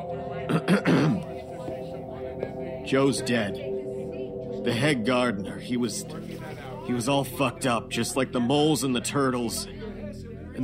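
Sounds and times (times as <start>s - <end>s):
man clearing his throat in an audio drama: 0.5s - 1.4s
speech: 0.7s - 1.3s, 2.9s - 3.7s, 4.6s - 9.8s.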